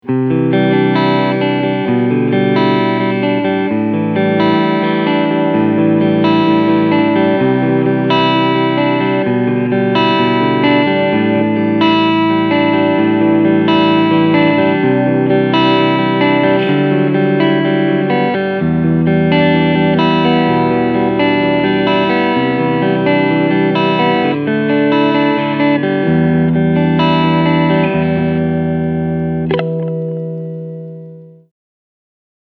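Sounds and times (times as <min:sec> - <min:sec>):
clean guitar tone on front pickup: 0:00.0 - 0:31.5.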